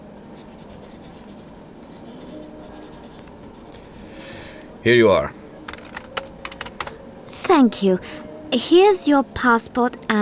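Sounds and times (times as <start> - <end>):
pen scratching on paper filling in a hotel registration card: 0.4 - 4.1
speech: 4.8 - 5.4, 7.6 - 10.1.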